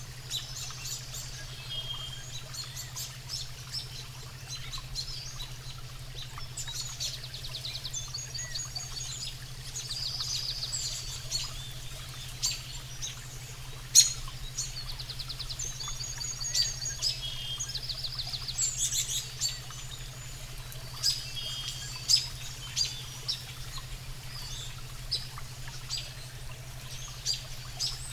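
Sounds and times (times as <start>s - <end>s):
forest relaxation sound bath with alpha waves: 0.0s - 28.1s.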